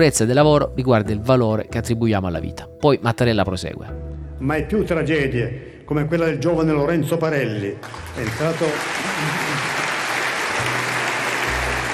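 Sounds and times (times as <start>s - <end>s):
speech: 0.0s - 9.4s
long applause: 7.8s - 11.9s.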